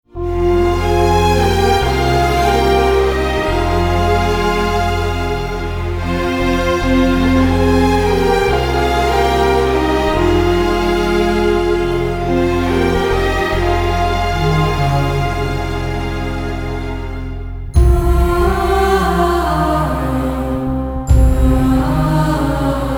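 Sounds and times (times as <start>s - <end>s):
instrumental music: 0.0s - 22.9s.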